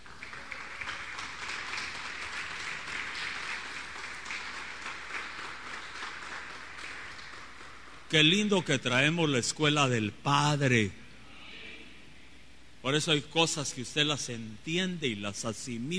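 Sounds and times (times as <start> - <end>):
audience applause: 0.0 - 8.2
speech: 8.1 - 11.0, 12.9 - 15.9.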